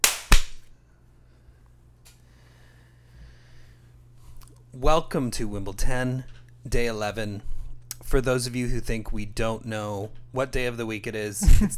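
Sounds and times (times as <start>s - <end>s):
hand claps: 0.0s - 0.7s
speech: 4.7s - 11.7s.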